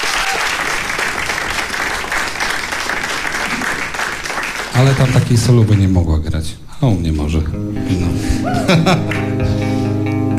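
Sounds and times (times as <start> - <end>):
audience applause at a concert: 0.0 - 5.8
speech: 4.8 - 9.6
laughter: 8.4 - 9.7.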